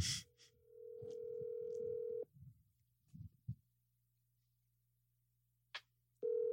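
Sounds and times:
ringback tone from an outgoing phone call on speakerphone: 0:00.7 - 0:02.3, 0:06.2 - 0:06.5.

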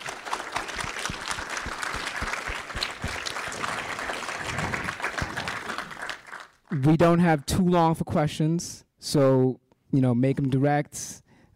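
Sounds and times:
audience applause: 0:00.0 - 0:07.0
speech: 0:06.7 - 0:11.5.

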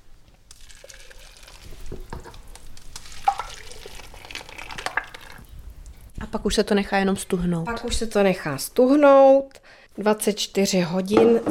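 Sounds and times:
thick liquid mixture pouring into a paper-lined box: 0:00.5 - 0:05.5
speech: 0:06.3 - 0:11.4.

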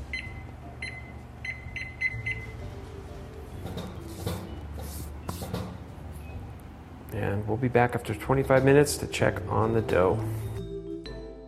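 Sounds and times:
kitchen timer beeps being set: 0:00.0 - 0:02.6
low hum: 0:00.0 - 0:10.8
speech: 0:07.2 - 0:10.5.

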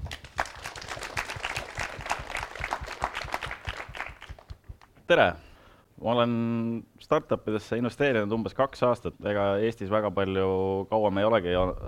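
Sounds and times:
audience applause: 0:00.0 - 0:04.7
speech: 0:05.1 - 0:05.4, 0:06.0 - 0:11.8.

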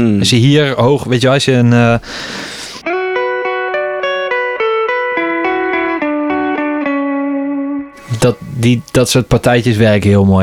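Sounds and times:
speech: 0:00.0 - 0:02.6, 0:08.2 - 0:10.4
effects-laden electric guitar playing single sustained notes: 0:02.8 - 0:10.0.

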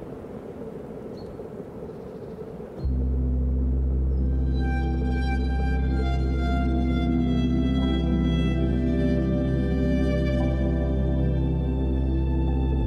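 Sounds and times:
quiet wind rumbling: 0:00.0 - 0:12.8
loud sustained string chord: 0:02.9 - 0:12.8.

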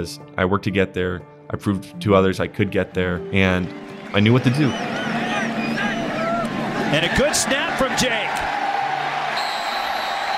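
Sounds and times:
speech: 0:00.0 - 0:05.1, 0:06.9 - 0:08.5
crowd cheering: 0:03.6 - 0:10.3.

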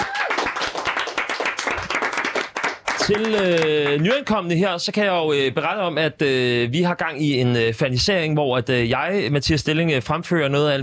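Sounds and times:
audience clapping: 0:00.0 - 0:04.4
speech: 0:03.1 - 0:10.8.

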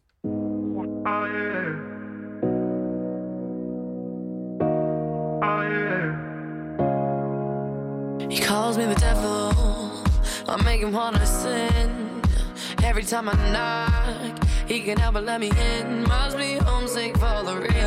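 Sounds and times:
pop song synth chords: 0:00.2 - 0:17.8
speech: 0:08.7 - 0:09.5, 0:10.5 - 0:12.2, 0:12.8 - 0:17.8.

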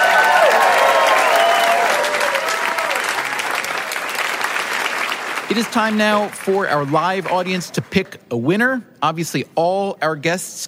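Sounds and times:
live audience applauding the guests of a discussion show: 0:00.0 - 0:07.9
speech: 0:05.5 - 0:10.6.

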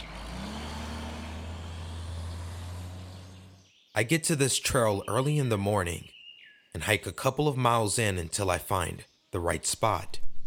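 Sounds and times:
pickup truck engine rumbling and revving: 0:00.0 - 0:03.6
speech: 0:04.0 - 0:06.2, 0:06.8 - 0:10.2.

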